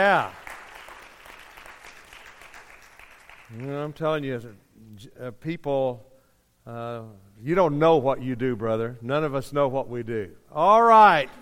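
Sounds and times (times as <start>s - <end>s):
speech: 0.0s - 0.4s, 3.5s - 11.4s
audience applause: 0.0s - 3.8s.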